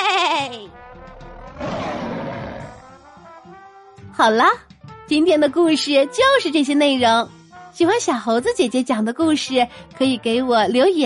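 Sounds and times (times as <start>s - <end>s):
lion roar sound effect: 1.0s - 2.9s
speech: 4.2s - 11.0s.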